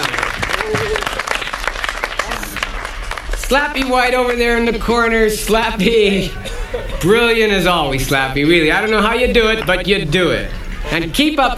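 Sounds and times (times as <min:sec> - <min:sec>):
audience applause: 0:00.0 - 0:04.3
speech: 0:03.5 - 0:11.5.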